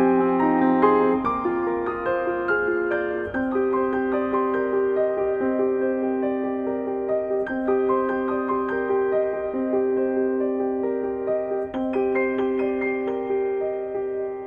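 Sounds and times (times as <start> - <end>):
solo piano: 0.0 - 14.4.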